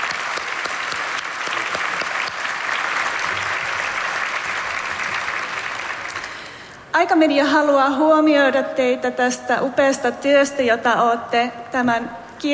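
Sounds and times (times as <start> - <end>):
audience applause: 0.0 - 6.7
speech: 7.0 - 12.5.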